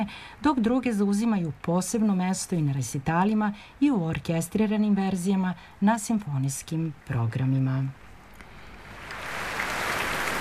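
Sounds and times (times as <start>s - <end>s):
speech: 0.0s - 8.0s
applause at the Royal Albert Hall awaiting an encore: 9.0s - 10.3s.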